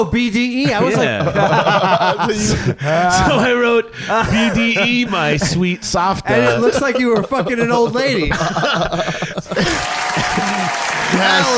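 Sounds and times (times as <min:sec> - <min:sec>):
speech: 0:00.0 - 0:09.8, 0:11.1 - 0:11.5
laughter: 0:00.6 - 0:11.5
applause sound effect from a clap machine: 0:09.6 - 0:11.5.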